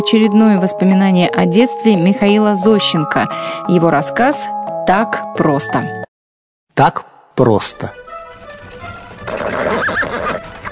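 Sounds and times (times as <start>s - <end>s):
speech: 0.1s - 6.0s, 6.8s - 8.0s
hoofbeats of a horse pulling a cart on a dusty road: 8.6s - 10.6s
small peasant horse whinnying: 9.2s - 10.5s.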